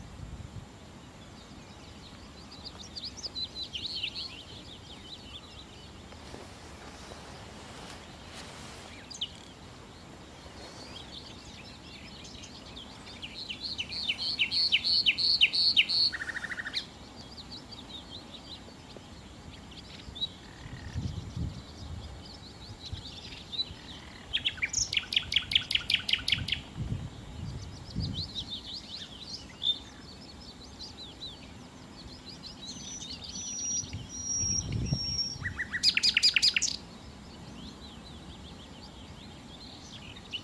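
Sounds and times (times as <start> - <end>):
common nightingale song: 0.0 - 40.4
faint twittering from other birds: 1.0 - 40.4.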